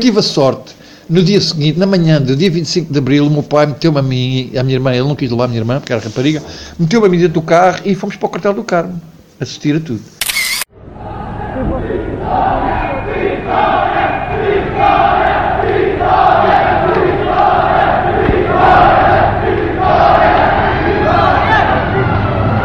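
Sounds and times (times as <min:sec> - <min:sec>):
speech: 0:00.0 - 0:10.2, 0:11.6 - 0:14.2
crowd shouting victory: 0:10.8 - 0:22.6.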